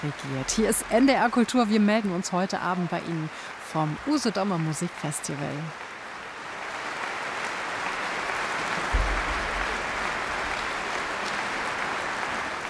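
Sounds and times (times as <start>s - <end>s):
speech: 0.0s - 5.9s
enthusiastic concert audience applause: 2.6s - 12.6s.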